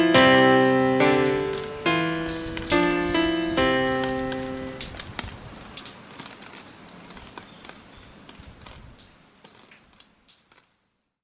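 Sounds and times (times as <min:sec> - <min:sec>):
classical music: 0:00.0 - 0:05.1.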